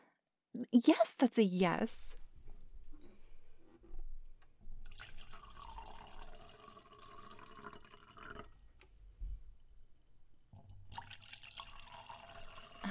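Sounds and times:
speech: 0:00.6 - 0:02.2
wine pouring into a glass: 0:04.8 - 0:08.8, 0:10.6 - 0:12.9.

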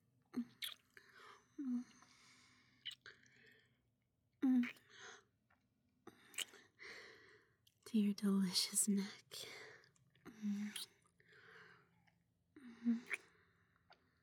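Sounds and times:
soft wet kissing sounds from a woman's lips: 0:00.4 - 0:00.9, 0:04.5 - 0:04.9, 0:06.2 - 0:06.6, 0:10.5 - 0:11.0, 0:12.9 - 0:13.3
speech: 0:08.0 - 0:09.3.

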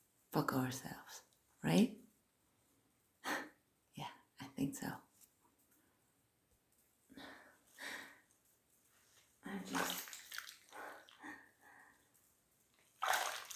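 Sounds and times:
speech: 0:00.4 - 0:02.0, 0:04.6 - 0:05.0, 0:09.5 - 0:10.0
warm bath water sloshing and splashing: 0:09.5 - 0:11.4, 0:12.7 - 0:13.5.

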